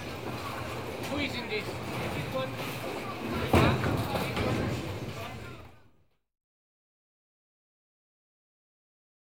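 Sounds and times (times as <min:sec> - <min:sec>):
bowling alley general atmosphere: 0:00.0 - 0:06.1.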